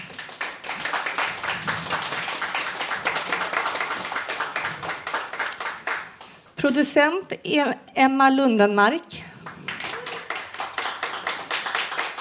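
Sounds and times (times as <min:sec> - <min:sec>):
applause: 0:00.0 - 0:06.4, 0:09.4 - 0:12.1
speech: 0:06.6 - 0:09.2.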